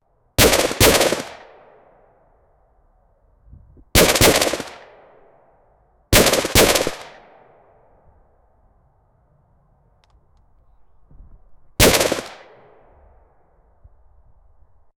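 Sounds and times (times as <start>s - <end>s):
75mm gun from World War: 0.4s - 1.8s, 4.0s - 5.2s, 6.1s - 7.4s, 11.8s - 12.8s.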